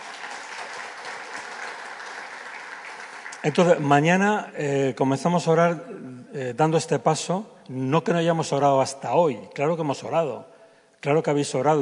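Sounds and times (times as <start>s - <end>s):
audience clapping: 0.0s - 4.2s
speech: 3.4s - 11.8s.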